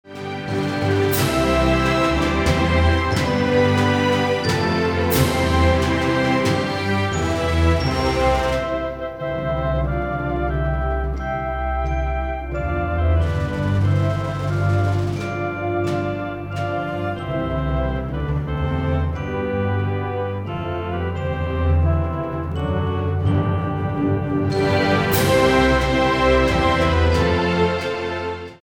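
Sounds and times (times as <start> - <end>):
national anthem music: 0.0 - 28.6.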